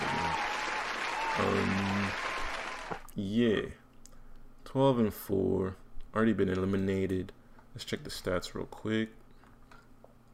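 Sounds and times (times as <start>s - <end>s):
applause sound effect: 0.0s - 3.0s
speech: 3.2s - 3.8s, 4.7s - 9.2s.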